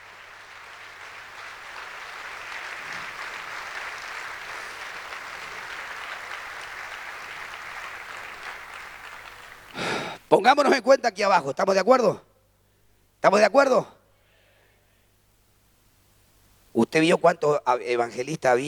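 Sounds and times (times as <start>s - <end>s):
crowd applause: 0.0s - 10.2s
speech: 10.3s - 12.3s, 13.2s - 14.0s, 16.9s - 18.6s.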